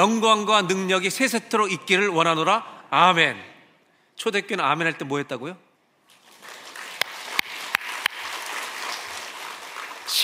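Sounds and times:
speech: 0.0s - 3.5s, 4.2s - 5.6s
audience clapping hands: 6.1s - 10.2s.

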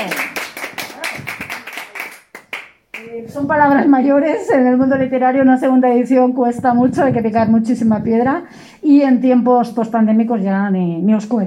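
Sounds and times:
applause: 0.0s - 3.1s
speech: 3.4s - 11.4s.

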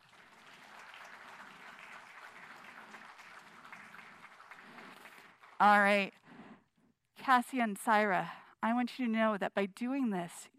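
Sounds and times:
audience applauding: 0.0s - 6.1s
speech: 5.6s - 6.2s, 7.3s - 10.5s.

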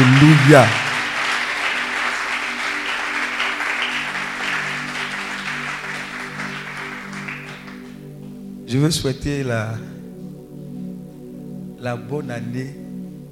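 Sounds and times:
church congregation clapping at a French-language service: 0.0s - 8.4s
sustained low musical tones: 0.0s - 13.3s
speech: 0.2s - 0.8s, 8.7s - 10.0s, 11.8s - 12.8s.

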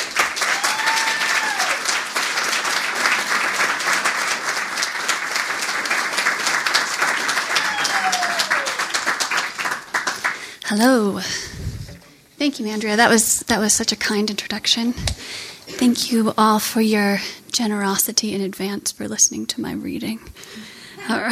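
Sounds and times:
audience applause welcoming a reader at a reading event: 0.0s - 10.5s
speech: 10.7s - 11.6s, 12.4s - 21.3s.

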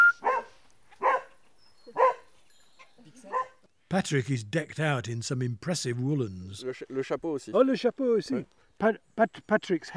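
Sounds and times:
border collie barking: 0.2s - 2.3s, 3.2s - 3.6s
speech: 3.9s - 9.9s.

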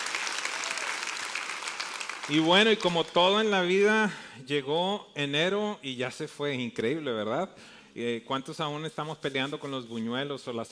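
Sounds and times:
audience applause: 0.0s - 3.1s
speech: 2.3s - 10.7s.

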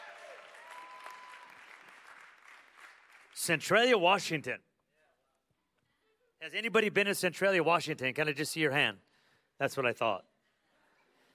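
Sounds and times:
people clapping: 0.0s - 3.6s
speech: 3.4s - 4.7s, 6.5s - 10.3s.

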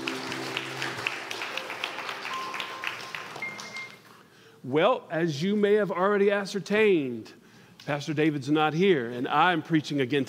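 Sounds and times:
audience clapping: 0.0s - 4.3s
speech: 4.6s - 10.2s.

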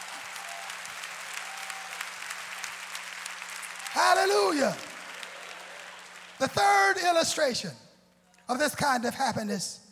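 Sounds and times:
audience clapping hands: 0.0s - 7.2s
speech: 4.0s - 4.9s, 6.4s - 7.8s, 8.5s - 9.8s.

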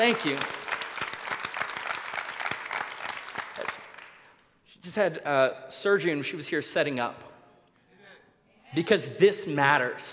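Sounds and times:
speech: 0.0s - 0.6s, 4.9s - 7.3s, 8.7s - 10.1s
audience round of applause: 0.0s - 4.2s.

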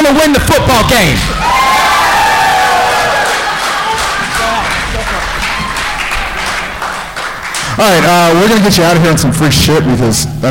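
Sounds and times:
speech: 0.1s - 1.7s, 7.8s - 10.4s
crowd cheering: 1.2s - 9.0s.

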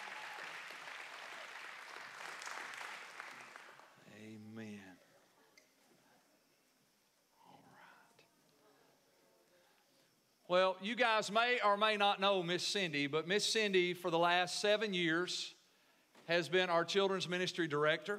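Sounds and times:
audience applause: 0.0s - 4.0s
speech: 10.5s - 15.6s, 16.3s - 18.1s.

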